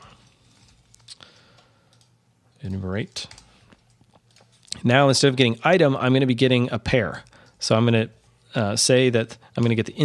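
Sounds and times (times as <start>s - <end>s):
code typed on a computer keyboard: 0.6s - 2.1s, 3.0s - 4.6s
speech: 2.6s - 3.4s, 4.8s - 10.0s.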